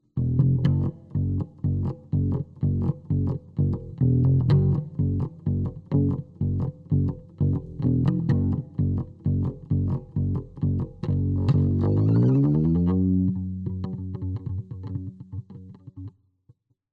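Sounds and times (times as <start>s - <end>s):
bass: 0.0s - 16.1s.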